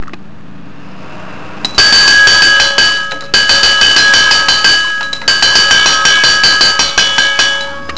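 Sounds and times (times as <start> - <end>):
cowbell: 1.7 - 7.9.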